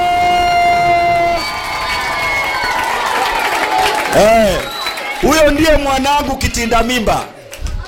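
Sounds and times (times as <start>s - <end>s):
crowd cheering and ululating for a teacher at a gathering: 0.0s - 5.6s
speech: 4.2s - 7.3s.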